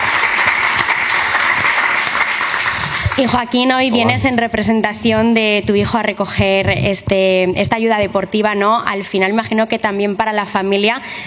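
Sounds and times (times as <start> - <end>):
audience applause at a ceremony awarding sports grants: 0.0 - 3.4
speech: 3.2 - 11.2.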